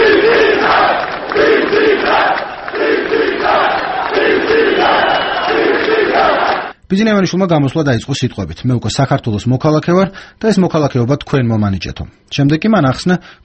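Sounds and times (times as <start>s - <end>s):
large crowd on Freedom Square giving an ovation to Bidzina Ivanishvili: 0.0s - 6.8s
speech: 6.9s - 13.4s.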